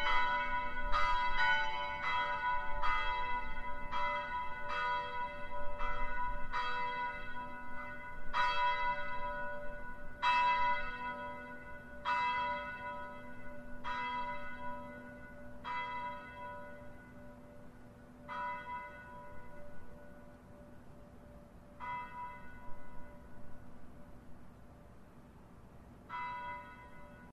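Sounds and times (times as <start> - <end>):
Angelus church bells pealing: 0.0 - 24.2, 26.1 - 27.3.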